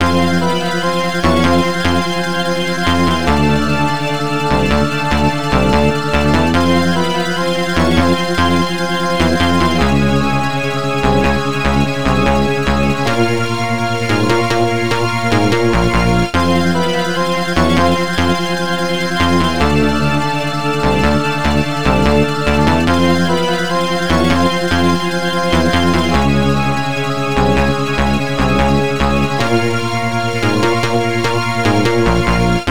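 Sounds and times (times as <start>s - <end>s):
background music: 0.0s - 32.6s.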